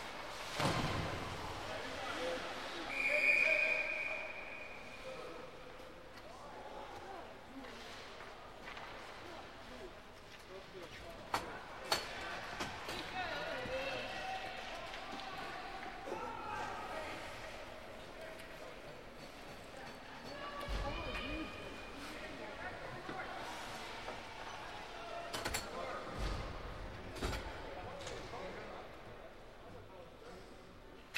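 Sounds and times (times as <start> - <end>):
ice hockey ambience: 0.0 - 31.1.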